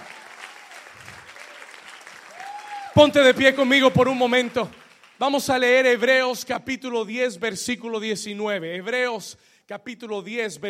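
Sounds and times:
audience applauding the Lord: 0:00.0 - 0:05.2
speech: 0:03.0 - 0:10.6.

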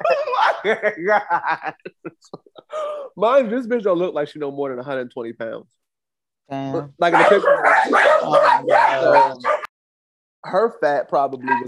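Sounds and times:
laughter: 0:00.0 - 0:02.9
speech: 0:00.1 - 0:05.8, 0:06.5 - 0:09.6, 0:10.4 - 0:11.6
dog barking and yipping with whimpering tones: 0:00.2 - 0:00.7, 0:07.1 - 0:09.7, 0:11.4 - 0:11.6.

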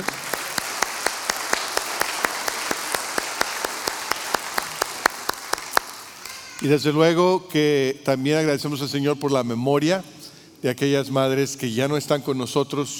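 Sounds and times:
audience applause: 0:00.0 - 0:06.6
speech: 0:06.6 - 0:12.9.

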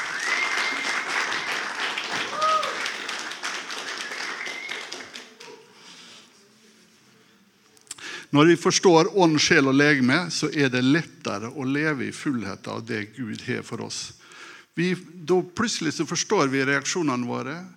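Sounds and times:
cheering voices: 0:00.0 - 0:05.5
audience applause: 0:00.0 - 0:05.8
speech: 0:08.3 - 0:14.2, 0:14.8 - 0:17.7.

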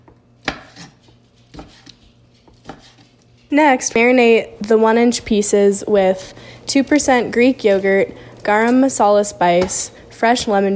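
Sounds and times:
knife cutting chicken into pieces: 0:00.4 - 0:03.2
speech: 0:03.5 - 0:10.7.

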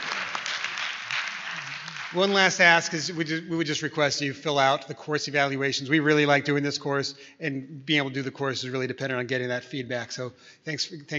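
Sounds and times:
audience clapping: 0:00.0 - 0:03.1
speech: 0:02.1 - 0:11.1.

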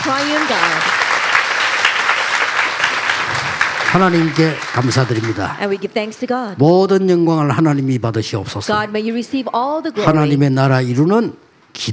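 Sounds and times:
audience applause: 0:00.0 - 0:05.6
speech: 0:00.1 - 0:01.0, 0:03.9 - 0:11.9.

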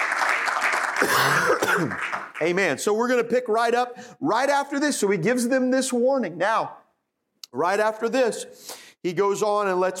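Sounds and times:
crowd clapping: 0:00.0 - 0:02.8
speech: 0:01.0 - 0:06.8, 0:07.5 - 0:09.9.

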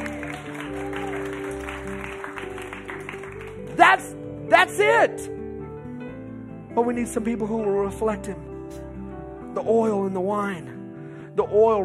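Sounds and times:
audience clapping together: 0:00.0 - 0:04.2
speech: 0:03.9 - 0:05.4, 0:06.8 - 0:08.5, 0:09.6 - 0:10.8, 0:11.4 - 0:11.8.

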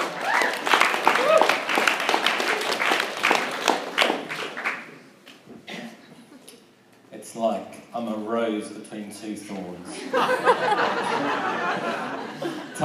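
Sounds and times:
audience round of applause: 0:00.0 - 0:05.0
speech: 0:08.5 - 0:12.8
laughter: 0:09.9 - 0:12.8.

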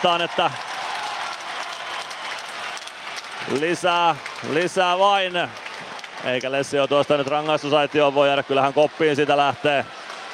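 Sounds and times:
speech: 0:00.0 - 0:00.7, 0:03.4 - 0:10.0
home crowd applauding in a large arena: 0:00.0 - 0:10.3.

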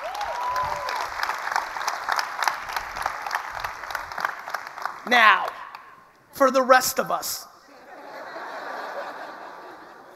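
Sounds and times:
audience applause: 0:00.0 - 0:05.6
speech: 0:05.1 - 0:05.5, 0:06.4 - 0:07.5
laughter: 0:07.6 - 0:10.1.

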